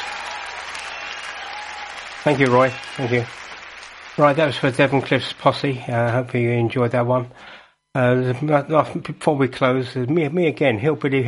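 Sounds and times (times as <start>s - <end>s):
audience applause: 0.0s - 5.7s
speech: 2.2s - 3.4s, 4.2s - 11.2s.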